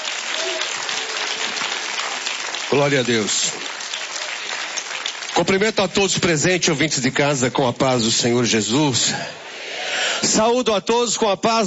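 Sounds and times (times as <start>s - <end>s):
church congregation applauding to welcome a pastor: 0.0s - 6.8s
speech: 2.7s - 3.5s, 5.4s - 9.5s, 10.2s - 11.6s.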